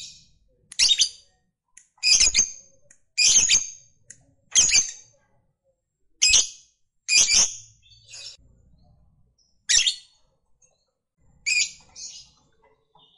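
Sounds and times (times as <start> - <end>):
lovebird song: 0.0 - 1.3, 2.0 - 3.9, 4.5 - 5.1, 6.2 - 8.4, 9.4 - 10.2, 11.4 - 12.4.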